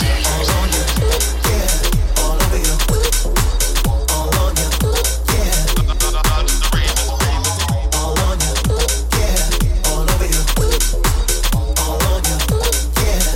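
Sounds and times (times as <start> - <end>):
funk music: 0.0 - 13.3.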